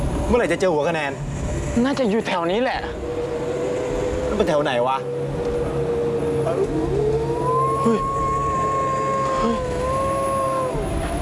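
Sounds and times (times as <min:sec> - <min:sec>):
low rumble: 0:00.0 - 0:11.2
speech: 0:00.3 - 0:03.4, 0:04.3 - 0:05.2, 0:07.8 - 0:08.1
dog howling: 0:03.0 - 0:11.2.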